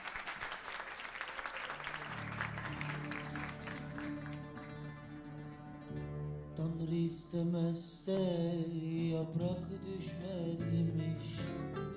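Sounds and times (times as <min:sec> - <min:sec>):
audience applause: 0:00.0 - 0:05.2
speech: 0:06.6 - 0:11.9.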